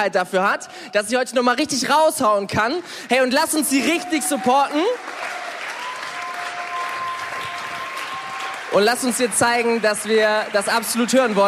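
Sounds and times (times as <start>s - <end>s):
speech: 0.0s - 5.3s, 8.7s - 11.4s
audience applause: 3.3s - 11.4s.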